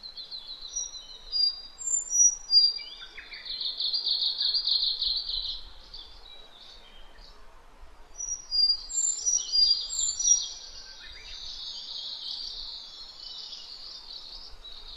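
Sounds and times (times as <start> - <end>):
Sakhalin leaf warbler song: 0.0 - 14.9.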